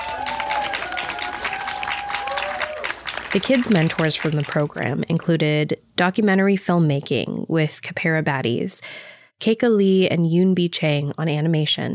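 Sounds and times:
audience applause: 0:00.0 - 0:04.8
speech: 0:03.3 - 0:11.9.

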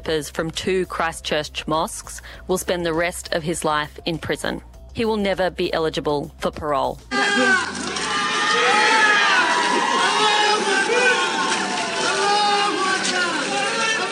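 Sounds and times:
speech: 0:00.1 - 0:07.8
crowd cheering and shouting outside the Christchurch High Court after a sentencing: 0:07.1 - 0:14.1.

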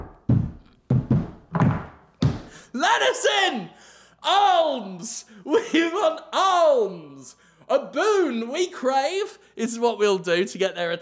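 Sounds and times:
heavy knocking on a door: 0:00.0 - 0:02.5
speech: 0:02.8 - 0:11.0.

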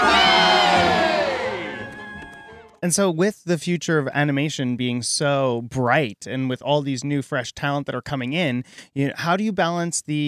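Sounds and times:
crowd giving three cheers: 0:00.0 - 0:02.7
speech: 0:02.8 - 0:10.2.

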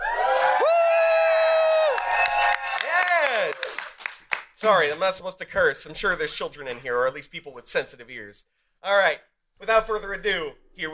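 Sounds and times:
audience cheering and whooping: 0:00.0 - 0:04.0
speech: 0:04.6 - 0:10.9.

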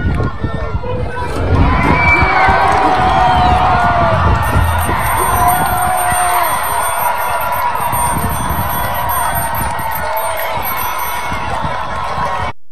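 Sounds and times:
people yelling in a massive crowd: 0:00.1 - 0:12.5
massive crowd roaring while tearing down a statue: 0:00.4 - 0:12.5.

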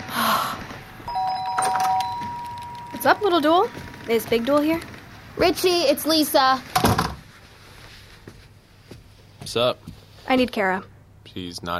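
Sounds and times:
doorbell ringing: 0:01.1 - 0:03.7
speech: 0:03.0 - 0:06.7, 0:09.5 - 0:11.7.

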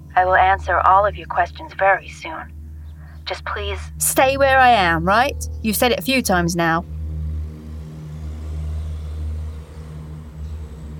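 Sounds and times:
car engine rumbling as the car arrives to pick someone up: 0:00.0 - 0:10.9
speech: 0:00.2 - 0:02.6, 0:03.3 - 0:06.9.

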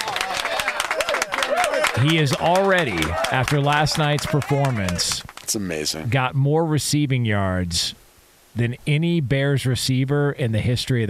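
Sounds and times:
round of applause: 0:00.0 - 0:05.6
speech: 0:02.0 - 0:08.0, 0:08.6 - 0:11.0.

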